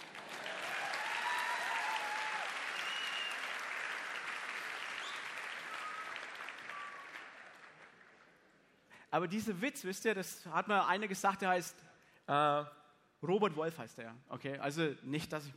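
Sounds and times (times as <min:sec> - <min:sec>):
audience applause: 0:00.0 - 0:08.5
speech: 0:09.1 - 0:15.5.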